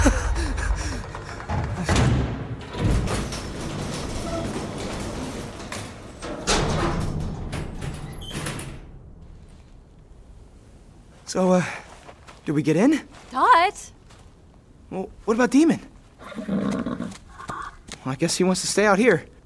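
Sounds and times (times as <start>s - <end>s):
sliding door-like clunks: 0.0s - 9.9s
video game elevator mechanical rumble: 0.0s - 11.2s
speech: 11.3s - 11.8s, 12.5s - 14.0s, 14.9s - 17.0s, 18.0s - 19.3s.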